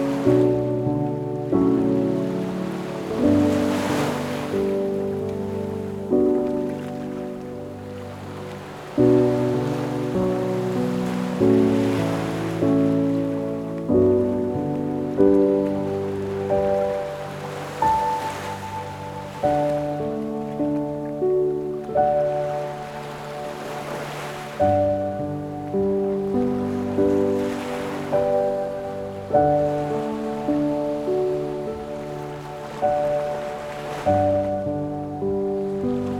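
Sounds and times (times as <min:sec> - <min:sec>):
relaxing ocean piano music: 0:00.0 - 0:36.1.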